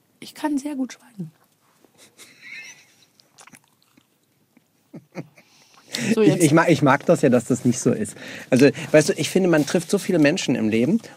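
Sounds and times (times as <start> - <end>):
speech: 0.2 - 1.4, 6.1 - 11.1
crunching and chewing of a waffle: 3.1 - 4.6.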